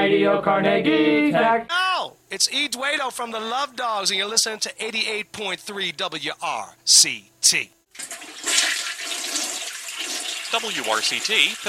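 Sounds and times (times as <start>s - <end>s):
speech: 0.1s - 8.1s, 10.5s - 11.6s
toilet flushing: 7.9s - 11.6s.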